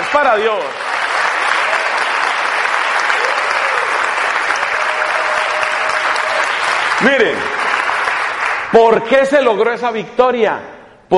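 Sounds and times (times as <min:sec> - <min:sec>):
audience applause: 0:00.0 - 0:08.8
speech: 0:00.1 - 0:00.9, 0:07.0 - 0:07.6, 0:08.7 - 0:11.1.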